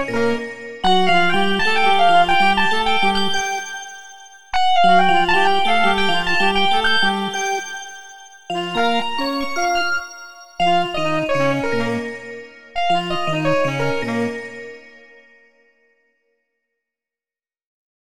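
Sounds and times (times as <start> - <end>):
creamy saxophone: 0.0 - 10.0, 10.6 - 15.6
bells: 1.8 - 10.7.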